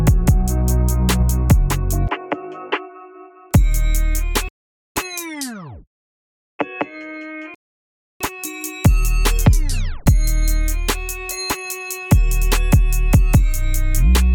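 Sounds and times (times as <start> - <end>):
instrumental music: 0.0 - 5.3, 8.2 - 14.3.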